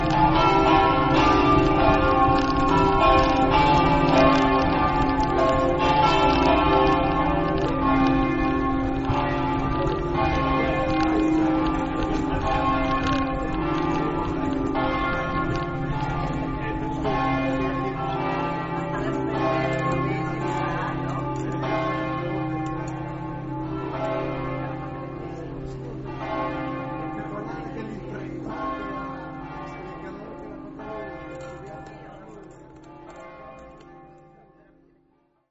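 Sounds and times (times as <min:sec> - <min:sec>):
bells: 0:00.0 - 0:35.4.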